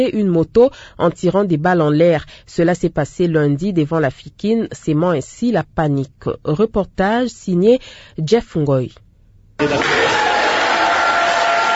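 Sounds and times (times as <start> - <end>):
speech: 0.0 - 9.0, 9.6 - 10.1
crowd cheering and shouting for joy at a court verdict: 9.6 - 11.7.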